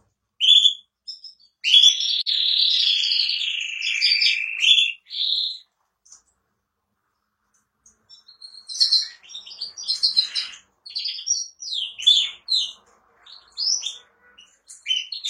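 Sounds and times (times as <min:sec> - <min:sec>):
canary trilling: 0:00.4 - 0:05.7, 0:07.8 - 0:15.2.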